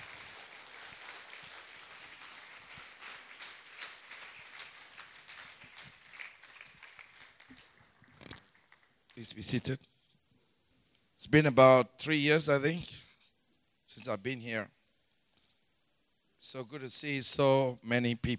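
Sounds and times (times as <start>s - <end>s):
church service audience applause welcoming a pastor: 0.0s - 8.9s
speech: 9.2s - 9.9s, 11.3s - 13.0s, 14.0s - 14.8s, 16.5s - 18.3s.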